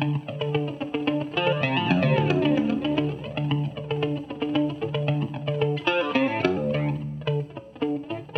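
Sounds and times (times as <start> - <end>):
rhythm and fills with and without delay: 0.1 - 8.2.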